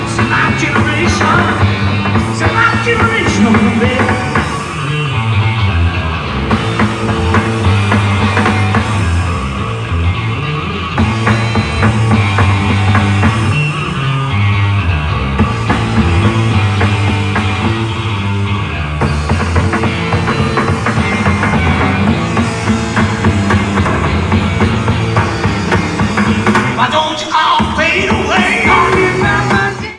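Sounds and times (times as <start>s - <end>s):
bass solo: 0.0s - 29.9s.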